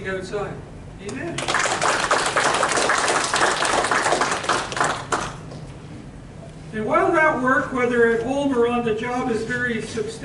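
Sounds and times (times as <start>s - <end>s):
speech: 0.0s - 2.3s, 6.8s - 10.2s
audience clapping: 1.4s - 5.6s.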